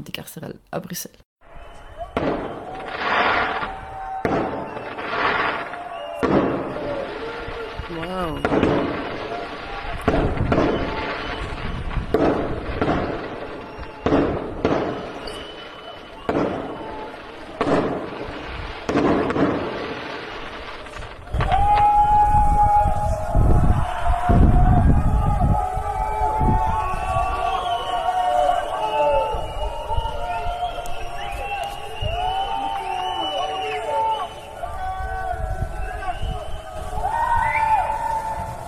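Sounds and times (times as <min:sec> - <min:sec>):
speech: 0:00.0 - 0:01.3, 0:07.9 - 0:09.0
fireworks at an anti-prison action in Brussels: 0:01.4 - 0:38.6.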